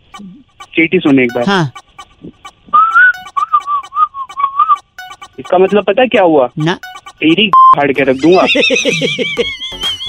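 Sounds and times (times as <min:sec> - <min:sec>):
speech: 0:00.2 - 0:01.8, 0:05.4 - 0:10.0
person whistling a tune: 0:02.6 - 0:05.5
laughter: 0:08.1 - 0:10.0.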